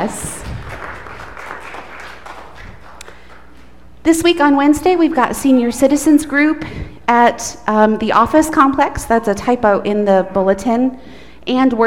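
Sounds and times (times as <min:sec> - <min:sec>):
speech: 0:00.0 - 0:00.4, 0:04.0 - 0:11.8
audience clapping for newlyweds: 0:00.2 - 0:03.7.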